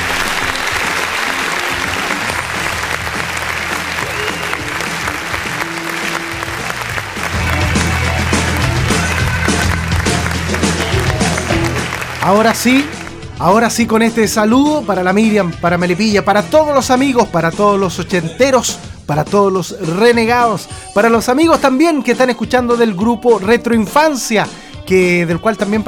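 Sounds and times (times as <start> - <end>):
applause: 0.0 - 13.8
speech: 12.3 - 25.8.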